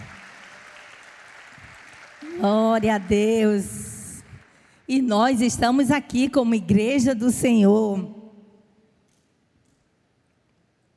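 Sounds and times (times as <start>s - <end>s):
audience applauding: 0.0s - 4.7s
speech: 2.2s - 3.8s, 4.9s - 8.2s.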